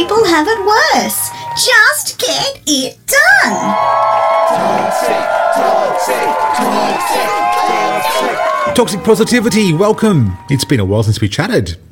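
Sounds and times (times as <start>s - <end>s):
audience cheering and whooping at a motivational talk: 0.0s - 1.8s, 3.4s - 10.9s
speech: 0.3s - 11.9s.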